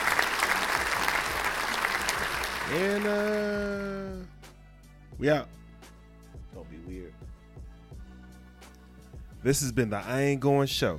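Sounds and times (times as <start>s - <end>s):
round of applause: 0.0s - 3.9s
speech: 2.7s - 4.4s, 5.2s - 5.6s, 9.4s - 10.9s.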